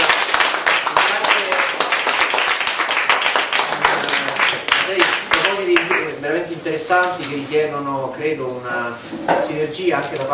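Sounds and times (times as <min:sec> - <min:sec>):
audience applause: 0:00.0 - 0:06.0
speech: 0:06.7 - 0:10.3.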